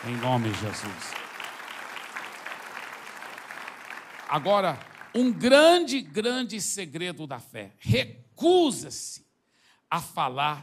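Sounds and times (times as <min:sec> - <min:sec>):
speech: 0:00.0 - 0:01.2, 0:04.3 - 0:09.3, 0:09.9 - 0:10.6
audience applause: 0:00.0 - 0:05.5.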